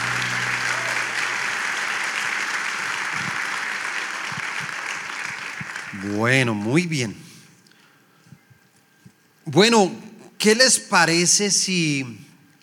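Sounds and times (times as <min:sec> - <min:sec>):
audience applause: 0:00.0 - 0:06.5
speech: 0:06.0 - 0:07.2, 0:09.6 - 0:12.2.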